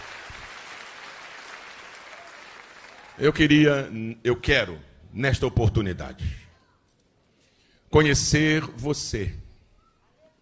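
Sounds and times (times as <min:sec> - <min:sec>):
audience applauding: 0:00.0 - 0:03.4
speech: 0:03.2 - 0:06.4, 0:07.9 - 0:09.4.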